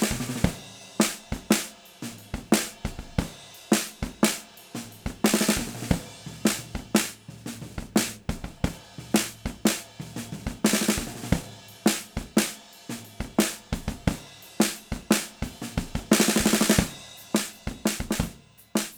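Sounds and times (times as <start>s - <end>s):
snare drum recorded with a PGA98: 0.0s - 18.9s.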